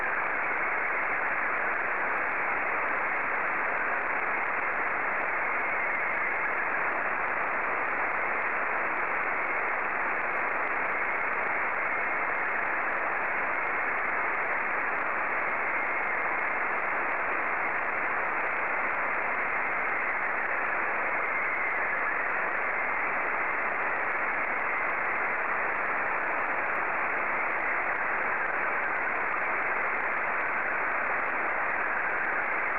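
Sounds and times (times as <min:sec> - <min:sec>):
SSTV signal in Scottie 1 mode: 0:00.0 - 0:32.7.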